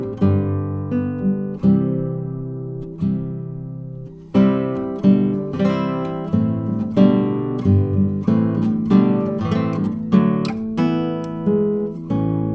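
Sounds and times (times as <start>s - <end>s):
pavan played on a Bartolex SRC7 guitar: 0.0s - 12.5s.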